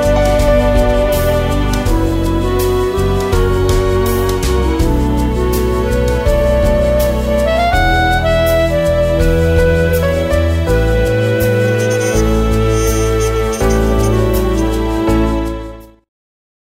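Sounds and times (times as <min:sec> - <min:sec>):
soul clarinet: 0:00.0 - 0:16.0.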